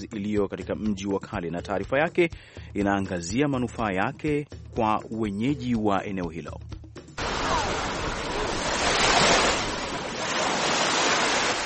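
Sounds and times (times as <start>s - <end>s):
speech: 0.0s - 6.8s
gentle Indian Ocean waves lapping the shore at Fort Jesus, Mombasa: 7.2s - 11.6s.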